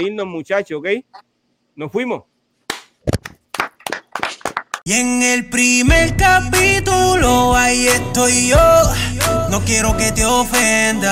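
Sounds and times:
speech: 0:00.0 - 0:02.3, 0:04.8 - 0:11.1
applause: 0:03.2 - 0:04.8.

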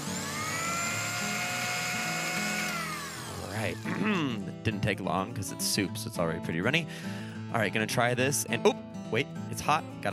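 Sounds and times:
blender blending soup: 0:00.0 - 0:04.3
speech: 0:03.6 - 0:10.1.

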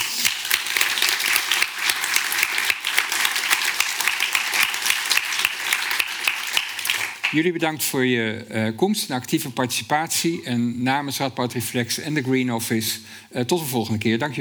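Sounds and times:
audience applause: 0:00.0 - 0:07.4
speech: 0:07.3 - 0:14.3.

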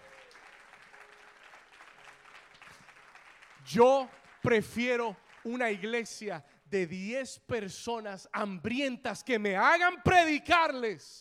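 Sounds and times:
audience applause: 0:00.0 - 0:06.0
speech: 0:03.7 - 0:11.1.

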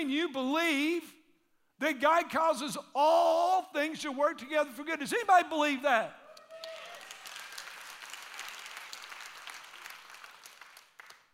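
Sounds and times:
speech: 0:00.0 - 0:01.2, 0:01.8 - 0:06.2
audience clapping: 0:06.4 - 0:11.3.

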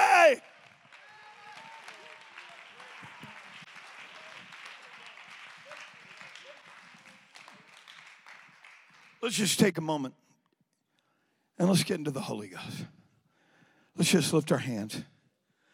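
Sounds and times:
audience clapping hands: 0:00.0 - 0:09.8
speech: 0:00.3 - 0:00.5, 0:09.2 - 0:10.2, 0:11.6 - 0:13.0, 0:14.0 - 0:15.1.

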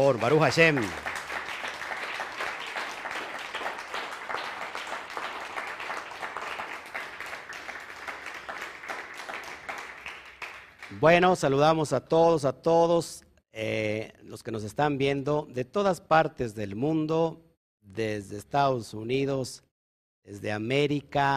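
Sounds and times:
speech: 0:00.0 - 0:01.1, 0:11.0 - 0:21.3
applause: 0:00.0 - 0:11.5.

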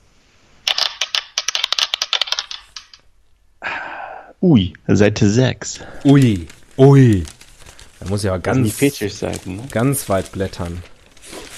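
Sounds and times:
dice being rolled: 0:00.7 - 0:03.0
speech: 0:04.4 - 0:07.4, 0:08.0 - 0:10.9.

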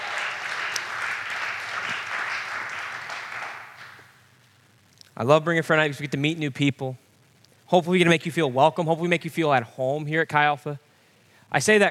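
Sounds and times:
applause: 0:00.0 - 0:04.2
speech: 0:05.2 - 0:07.0, 0:07.7 - 0:10.8, 0:11.5 - 0:11.8.

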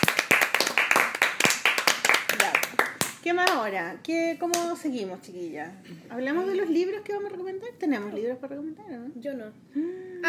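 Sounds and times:
hand clapping applause: 0:00.0 - 0:03.6
speech: 0:03.2 - 0:10.2.

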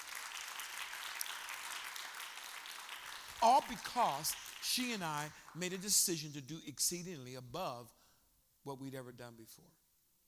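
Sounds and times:
audience clapping hands: 0:00.0 - 0:06.3
speech: 0:03.4 - 0:08.0, 0:08.7 - 0:09.8.

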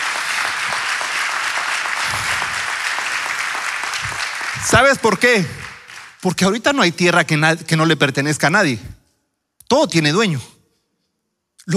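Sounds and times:
audience applauding: 0:00.0 - 0:06.5
speech: 0:04.6 - 0:05.6, 0:06.2 - 0:08.9, 0:09.7 - 0:10.5.

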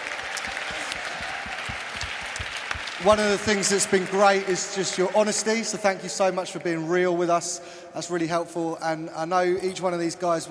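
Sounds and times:
audience applause: 0:00.0 - 0:05.5
speech: 0:03.0 - 0:10.4.

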